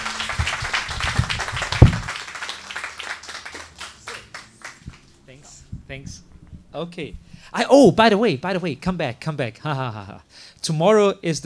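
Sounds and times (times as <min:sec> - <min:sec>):
audience applause: 0:00.0 - 0:05.1
speech: 0:05.9 - 0:11.4.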